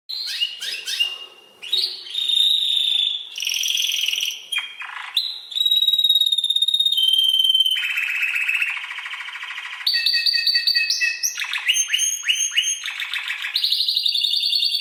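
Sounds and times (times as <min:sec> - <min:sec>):
canary singing: 0:00.1 - 0:14.7.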